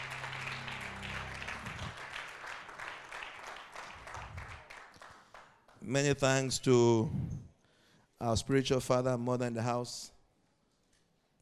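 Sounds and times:
low sustained hum: 0.0 - 2.0
large crowd clapping hands: 0.0 - 5.8
speech: 5.8 - 7.4, 8.2 - 10.2.

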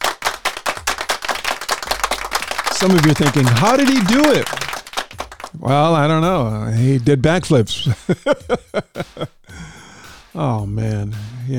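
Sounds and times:
audience applause: 0.0 - 5.9
laughter: 2.7 - 4.7, 7.6 - 9.5
speech: 2.8 - 4.6, 5.6 - 9.7, 10.4 - 11.5.

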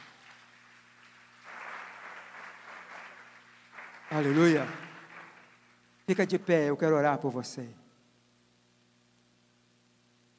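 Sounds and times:
applause: 0.0 - 6.6
speech: 4.1 - 4.8, 6.1 - 7.8.

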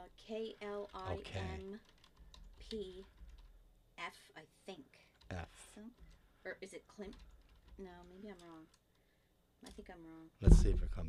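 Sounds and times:
computer keyboard typing a search: 0.0 - 3.6, 7.0 - 8.8
speech: 0.3 - 2.0, 2.6 - 3.2, 4.0 - 8.8, 9.6 - 11.0.

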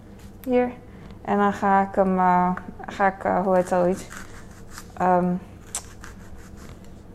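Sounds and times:
low hum: 0.0 - 7.1
speech: 0.4 - 4.2, 5.0 - 5.5
knife slicing through an onion: 3.5 - 6.8.

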